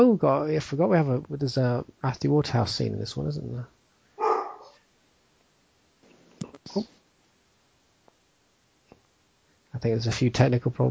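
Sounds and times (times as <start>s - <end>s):
speech: 0.0s - 3.8s, 6.6s - 7.0s, 9.8s - 10.8s
dogs barking: 4.2s - 4.8s.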